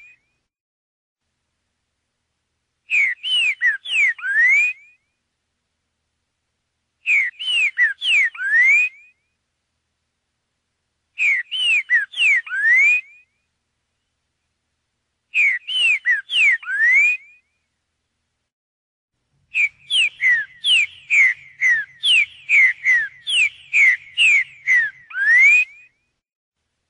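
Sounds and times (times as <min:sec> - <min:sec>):
green-winged saltator song: 0:00.0 - 0:00.4, 0:02.9 - 0:05.2, 0:07.0 - 0:09.4, 0:11.2 - 0:14.2, 0:15.3 - 0:17.6, 0:19.5 - 0:26.1.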